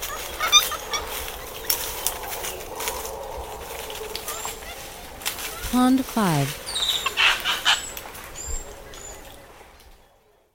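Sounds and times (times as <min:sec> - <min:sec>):
wedge-capped capuchin calls: 0:00.0 - 0:01.8, 0:05.5 - 0:08.0
speech: 0:05.7 - 0:06.6.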